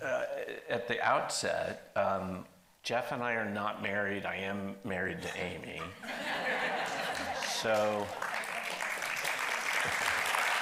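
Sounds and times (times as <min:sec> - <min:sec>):
speech: 0:00.0 - 0:06.4, 0:07.6 - 0:08.3
laughter: 0:06.0 - 0:08.4
audience applause: 0:06.9 - 0:10.6.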